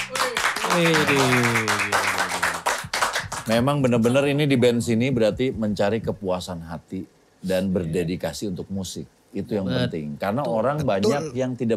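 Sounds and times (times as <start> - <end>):
voice cheering sliding downward: 0.0 - 2.5
audience applauding: 0.0 - 3.6
speech: 0.7 - 2.1, 3.5 - 11.7.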